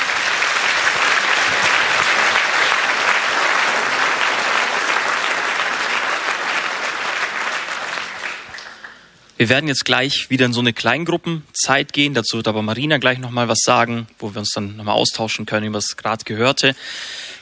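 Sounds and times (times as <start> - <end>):
audience applause: 0.0 - 9.2
speech: 9.4 - 17.2.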